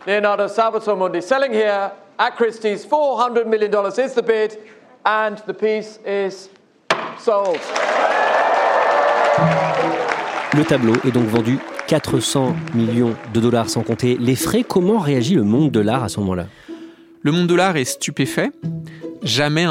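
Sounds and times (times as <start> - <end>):
speech: 0.0 - 6.6, 7.2 - 8.2, 9.4 - 16.6, 17.2 - 19.6
auction gavel strike: 6.9 - 7.2
applause: 7.4 - 15.4.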